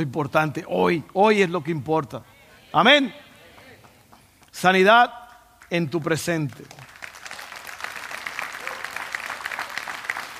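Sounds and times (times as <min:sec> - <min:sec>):
speech: 0:00.0 - 0:03.2, 0:04.6 - 0:06.8
delayed audience applause: 0:06.7 - 0:10.3.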